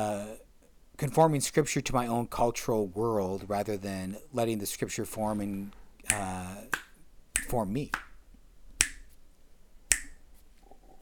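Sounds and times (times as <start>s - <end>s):
speech: 1.0s - 6.8s, 7.5s - 8.1s
finger snaps: 6.1s - 8.1s, 8.8s - 9.2s, 9.9s - 10.2s.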